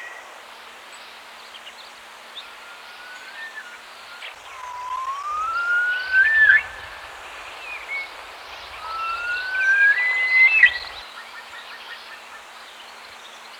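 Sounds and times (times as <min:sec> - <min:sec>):
Himalayan Snowcock giving a loud slightly rising whistle: 0:04.5 - 0:11.0.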